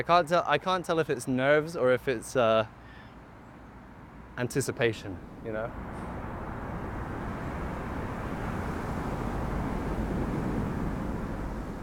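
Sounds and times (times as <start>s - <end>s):
speech: 0.0s - 2.8s, 4.4s - 6.1s
wind blowing outdoors: 4.7s - 11.8s.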